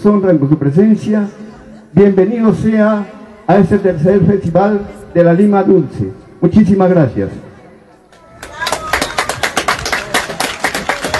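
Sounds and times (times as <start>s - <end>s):
speech: 0.0s - 7.5s
audience applause: 8.4s - 11.1s.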